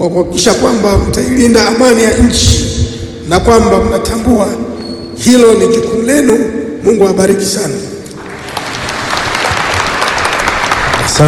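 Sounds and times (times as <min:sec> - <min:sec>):
speech: 0:00.0 - 0:04.6, 0:05.2 - 0:08.0
applause at an official ceremony for drivers: 0:08.2 - 0:11.2.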